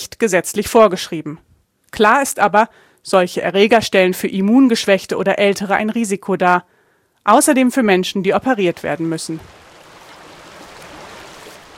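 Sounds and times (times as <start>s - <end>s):
speech: 0.1s - 9.6s
treated water pouring from Osnabrück sewage plant outlet into the river Hase: 8.7s - 11.7s.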